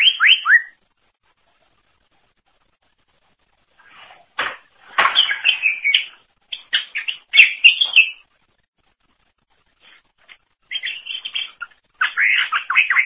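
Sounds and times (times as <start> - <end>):
greater green leafbird warbling: 5.1 - 8.2, 10.7 - 13.0.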